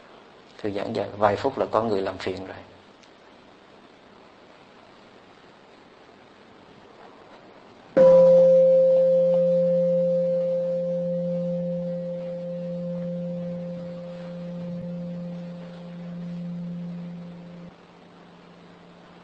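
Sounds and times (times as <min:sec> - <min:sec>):
speech: 0:00.6 - 0:02.8
meditation bell ringing: 0:08.0 - 0:17.7.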